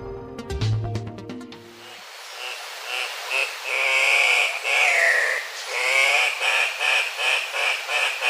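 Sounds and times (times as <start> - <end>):
Andean cock-of-the-rock call: 2.3 - 8.2.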